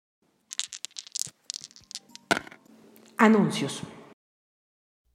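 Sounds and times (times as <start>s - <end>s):
dice being thrown: 0.4s - 3.2s
speech: 3.2s - 4.0s.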